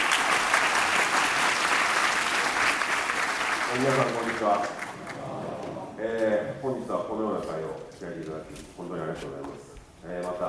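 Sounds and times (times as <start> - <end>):
audience applause: 0.0 - 5.8
speech: 3.7 - 4.9, 6.0 - 10.4.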